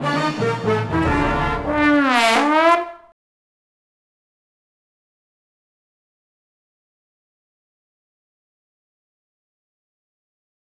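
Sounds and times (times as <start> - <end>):
race losing music: 0.0 - 3.1.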